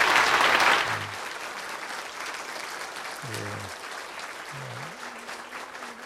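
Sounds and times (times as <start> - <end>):
church congregation applauding after a sung hymn: 0.0 - 6.0.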